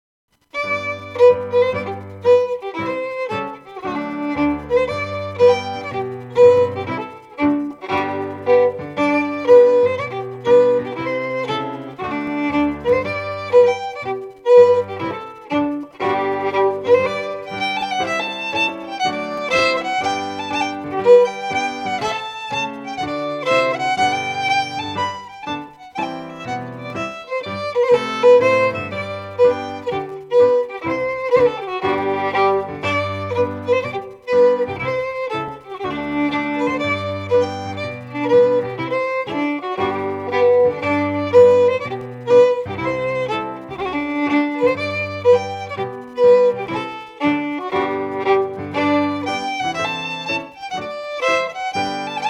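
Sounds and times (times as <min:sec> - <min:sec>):
Scottish fiddling of a strathspey: 0:00.4 - 0:52.2.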